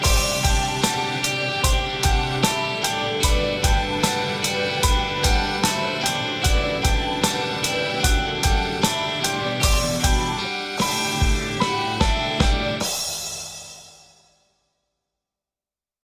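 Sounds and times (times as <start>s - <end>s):
pop rock music at 75 BPM: 0.0s - 13.8s.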